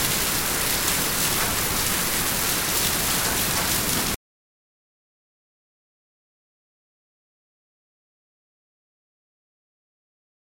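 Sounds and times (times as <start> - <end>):
rain on a rainy day in Paris: 0.0 - 4.2.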